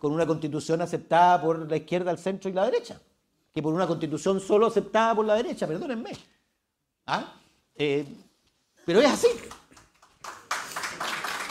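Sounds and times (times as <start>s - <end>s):
speech: 0.0s - 6.4s, 7.1s - 8.2s, 8.8s - 9.6s
audience applause: 9.5s - 11.4s.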